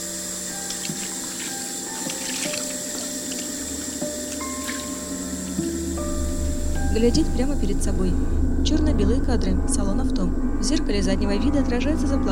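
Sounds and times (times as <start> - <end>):
water running from a tap during face washing: 0.0 - 6.9
speech: 6.9 - 12.3.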